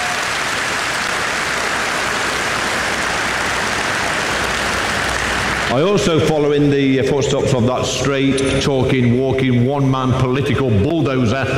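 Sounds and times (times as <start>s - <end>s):
audience applause: 0.0s - 6.3s
speech: 5.7s - 11.5s.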